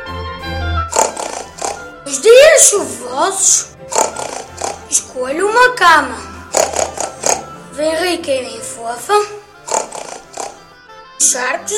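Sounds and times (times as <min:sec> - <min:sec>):
person imitating a pig oinking: 0:00.9 - 0:02.6, 0:03.9 - 0:05.1, 0:06.6 - 0:07.5, 0:09.7 - 0:10.6
speech: 0:02.2 - 0:03.8, 0:04.9 - 0:06.3, 0:07.8 - 0:09.4, 0:11.2 - 0:11.7.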